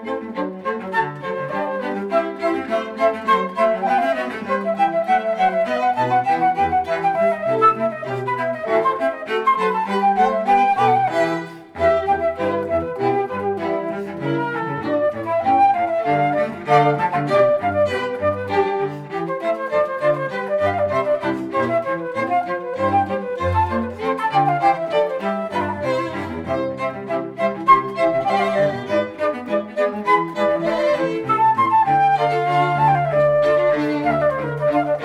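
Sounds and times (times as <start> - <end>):
flute quartet playing: 0.0 - 35.0.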